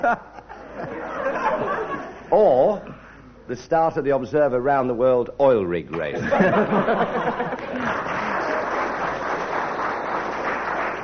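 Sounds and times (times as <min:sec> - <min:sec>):
laughter: 0:00.0 - 0:02.3, 0:06.2 - 0:09.2
speech: 0:00.0 - 0:08.2
ripple of applause: 0:07.5 - 0:11.0.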